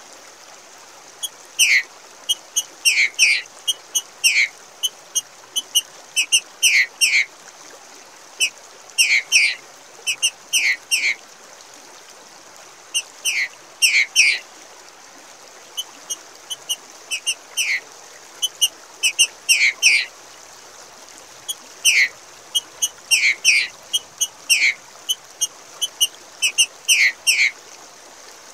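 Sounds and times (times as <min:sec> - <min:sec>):
Green-winged Saltator ticks and squeaky slurs: 0:01.2 - 0:07.3, 0:08.4 - 0:11.2, 0:13.0 - 0:14.4, 0:15.8 - 0:17.8, 0:18.4 - 0:20.1, 0:21.4 - 0:27.5.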